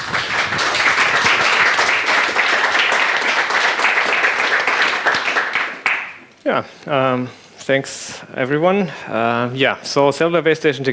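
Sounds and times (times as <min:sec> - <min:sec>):
audience applause welcoming a speaker: 0:00.0 - 0:06.2
speech: 0:06.5 - 0:10.9.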